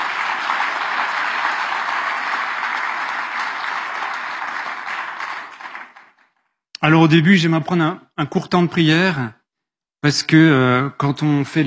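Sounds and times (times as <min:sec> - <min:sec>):
audience applause: 0:00.0 - 0:06.5
speech: 0:06.8 - 0:09.4, 0:10.0 - 0:11.6.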